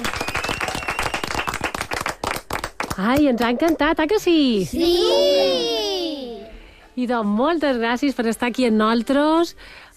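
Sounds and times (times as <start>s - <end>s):
loud applause: 0.0s - 2.4s
speech: 3.0s - 5.8s, 7.0s - 9.9s.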